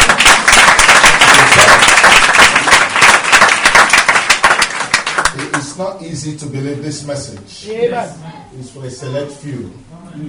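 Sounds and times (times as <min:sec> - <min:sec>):
audience clapping: 0:00.0 - 0:05.7
speech: 0:05.8 - 0:10.2.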